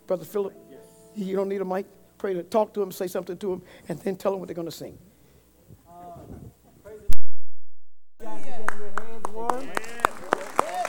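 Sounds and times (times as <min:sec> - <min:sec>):
speech: 0:00.1 - 0:00.6, 0:01.2 - 0:05.1
audience clapping hands in a steady rhythm: 0:08.2 - 0:10.8.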